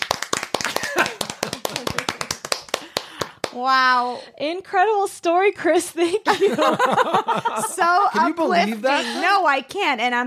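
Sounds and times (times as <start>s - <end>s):
clapping: 0.0s - 3.7s
laughter: 0.7s - 2.2s, 6.3s - 9.4s
speech: 3.6s - 10.2s.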